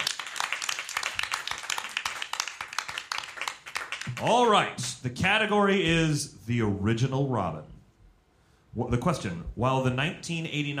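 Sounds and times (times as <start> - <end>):
audience applause: 0.0 - 4.6
speech: 4.2 - 7.7, 8.8 - 10.7.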